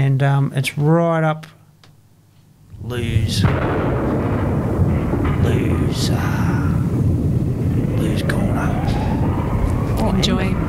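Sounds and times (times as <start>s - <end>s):
speech: 0.1s - 1.6s, 2.8s - 4.0s, 5.4s - 6.6s, 8.2s - 9.0s, 10.0s - 10.6s
air raid explosion effects opening a song: 2.8s - 10.6s
whooshing swells: 2.8s - 10.6s.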